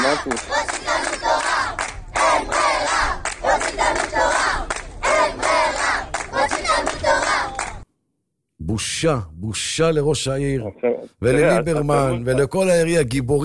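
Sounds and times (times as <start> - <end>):
crowd of elders shouting protest: 0.0 - 7.8
speech: 0.1 - 1.1, 8.7 - 13.4.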